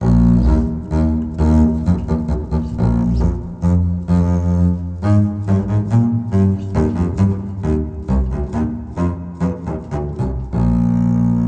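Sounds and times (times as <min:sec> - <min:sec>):
bass: 0:00.0 - 0:11.4.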